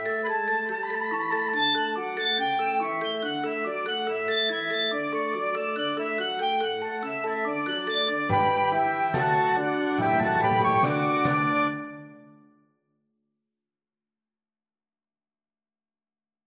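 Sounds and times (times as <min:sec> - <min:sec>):
orchestra: 0:00.0 - 0:12.4.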